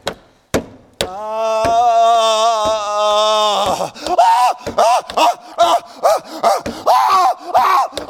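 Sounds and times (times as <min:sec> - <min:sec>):
sharp knocks: 0:00.0 - 0:01.9, 0:03.6 - 0:05.4, 0:06.5 - 0:06.9
man imitating screams: 0:01.0 - 0:08.0.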